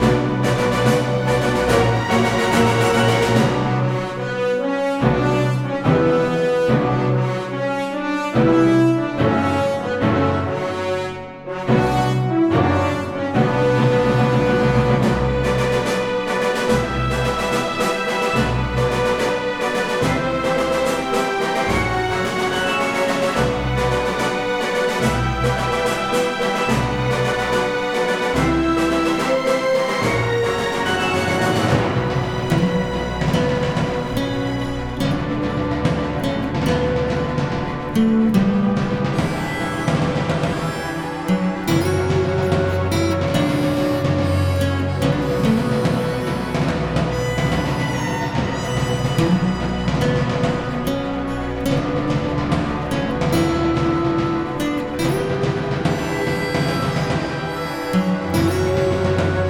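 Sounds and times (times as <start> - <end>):
prison music: 0.0 - 59.4.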